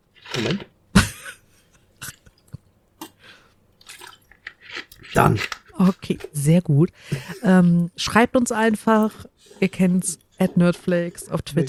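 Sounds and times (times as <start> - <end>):
speech: 0.4 - 0.7, 5.2 - 11.6
person drinking water: 3.9 - 5.5.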